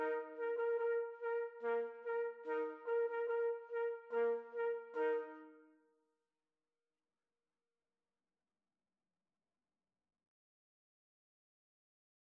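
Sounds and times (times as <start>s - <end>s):
trumpet trio playing a bolero karaoke backing: 0.0s - 5.5s.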